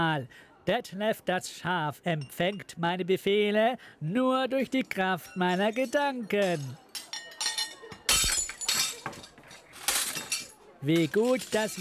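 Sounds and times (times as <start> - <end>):
speech: 0.0 - 7.1, 10.8 - 11.8
plate shards tinkling and scattering: 4.7 - 11.8
plates breaking: 5.2 - 11.8.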